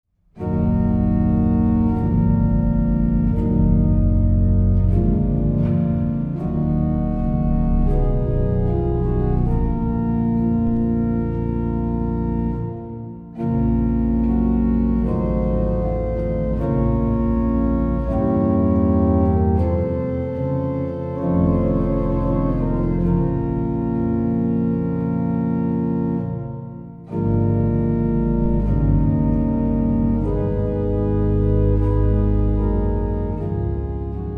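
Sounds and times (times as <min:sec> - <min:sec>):
organ: 0:00.4 - 0:34.3.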